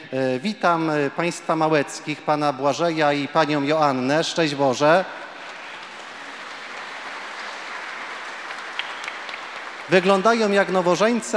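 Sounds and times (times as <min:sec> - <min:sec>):
speech: 0:00.1 - 0:05.2, 0:09.9 - 0:11.3
audience applause: 0:05.3 - 0:11.3.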